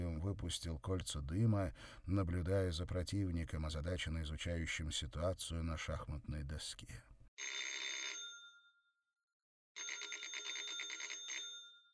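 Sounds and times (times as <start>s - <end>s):
speech: 0.2s - 7.7s
rattling telephone ring: 7.4s - 8.6s, 9.8s - 11.9s.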